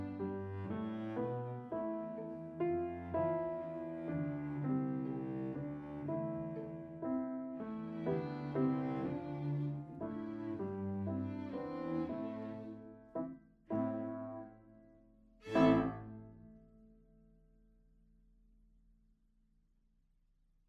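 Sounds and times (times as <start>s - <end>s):
string trio waltz: 0.0s - 13.2s, 15.4s - 16.4s.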